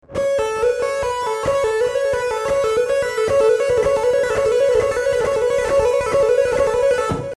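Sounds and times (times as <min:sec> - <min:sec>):
legato melody: 0:00.0 - 0:07.3.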